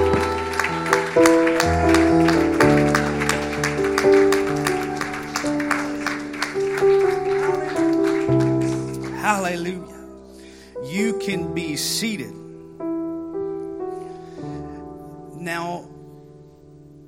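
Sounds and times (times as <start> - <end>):
audience clapping along: 0.0 - 9.8
organ or keyboard chords: 0.0 - 17.0
speech: 1.2 - 1.4.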